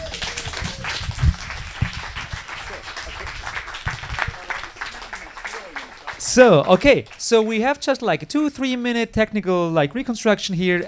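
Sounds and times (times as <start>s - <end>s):
audience applause: 0.0s - 7.8s
speech: 6.3s - 10.8s.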